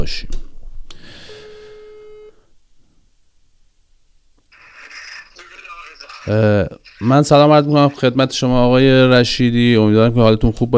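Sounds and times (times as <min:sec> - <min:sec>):
speech: 0:00.0 - 0:00.4, 0:06.2 - 0:10.7
telephone line tone as a call is placed: 0:01.3 - 0:02.4.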